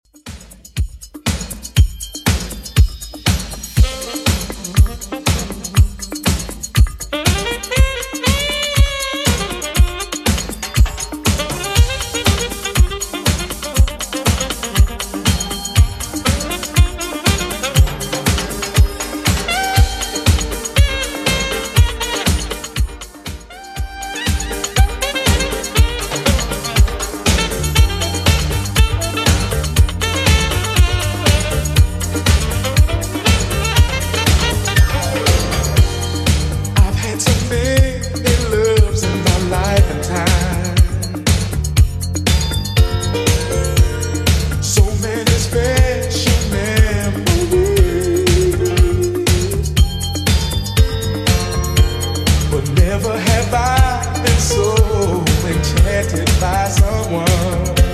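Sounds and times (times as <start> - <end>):
80s drum machine beat at 120 bpm: 0.0 - 57.9.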